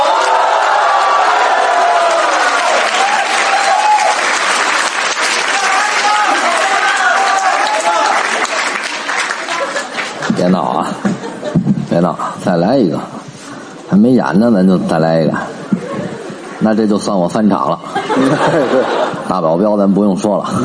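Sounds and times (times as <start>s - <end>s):
audience applause: 0.0s - 10.8s
laughter: 9.2s - 11.8s, 17.6s - 19.5s
speech: 12.5s - 13.2s, 13.9s - 15.5s, 16.6s - 20.6s.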